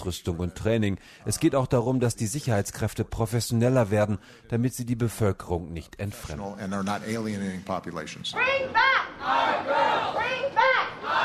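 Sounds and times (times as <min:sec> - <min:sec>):
speech: 0:00.0 - 0:10.4
protest crowd of demonstrators chanting a slogan in unison: 0:08.5 - 0:11.2.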